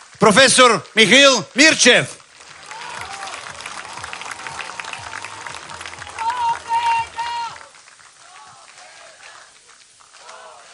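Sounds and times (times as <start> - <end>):
crowd applause at rally: 0.0 - 10.7
speech: 0.2 - 2.2.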